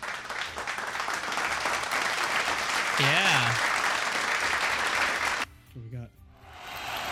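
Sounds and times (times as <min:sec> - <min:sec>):
applause sound effect: 0:00.0 - 0:05.5.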